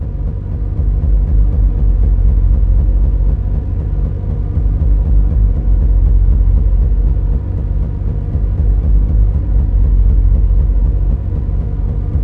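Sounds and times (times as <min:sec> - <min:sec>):
machine throb: 0:00.0 - 0:12.2.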